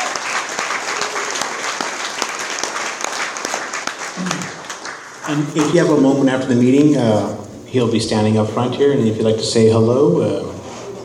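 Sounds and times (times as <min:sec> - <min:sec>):
audience applause: 0:00.0 - 0:06.0
speech: 0:05.3 - 0:10.6.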